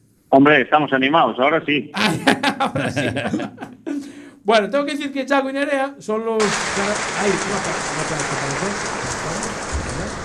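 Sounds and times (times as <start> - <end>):
speech: 0.3 - 3.8, 4.5 - 9.5
laughter: 2.0 - 4.3, 6.4 - 10.2
audience applauding at the Criterium Galicia round at the Rally de Mariña: 6.4 - 10.2.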